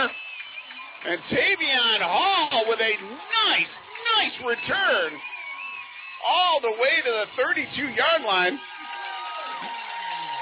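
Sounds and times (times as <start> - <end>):
home crowd roaring and cheering at football game: 0.0 - 10.3
speech: 1.0 - 5.4, 6.2 - 8.8.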